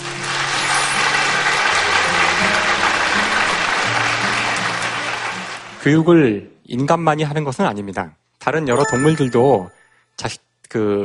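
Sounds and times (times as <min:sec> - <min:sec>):
audience applause: 0:00.0 - 0:06.0
speech: 0:05.8 - 0:11.0.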